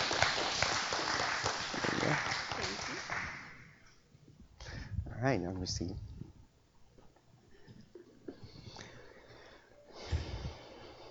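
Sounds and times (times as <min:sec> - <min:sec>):
audience clapping: 0:00.0 - 0:03.7
speech: 0:05.2 - 0:06.1.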